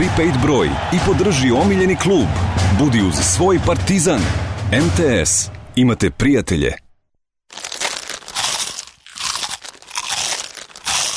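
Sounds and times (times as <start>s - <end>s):
speech: 0.0s - 6.8s
biting a small crunchy hazelnut-flavoured snack: 7.5s - 11.1s.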